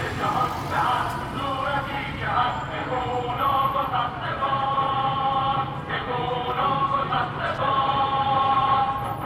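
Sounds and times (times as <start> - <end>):
people singing a revolutionary chant: 0.0 - 9.1.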